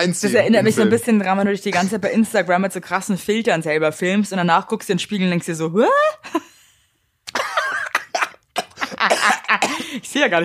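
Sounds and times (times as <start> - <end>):
speech: 0.0 - 6.5, 9.0 - 10.4
person coughing after coffee shot up their nose: 7.3 - 10.0.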